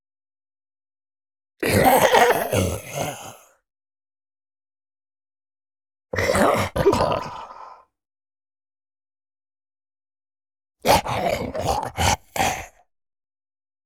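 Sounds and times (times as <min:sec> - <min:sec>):
huge male zombie dying agony groan: 0:01.6 - 0:03.6, 0:06.2 - 0:07.9, 0:10.9 - 0:12.8.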